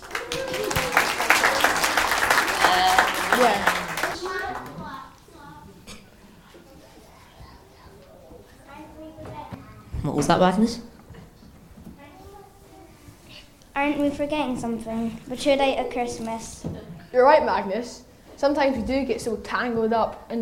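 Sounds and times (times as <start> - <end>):
audience applause: 0.0 - 4.8
speech: 3.4 - 3.7, 10.2 - 10.9, 13.9 - 20.3.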